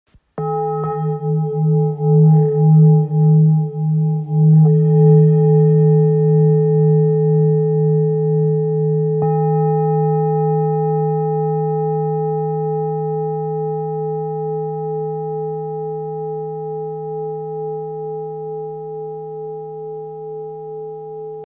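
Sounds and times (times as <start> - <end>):
old singing bowl in A: 0.4 - 21.4.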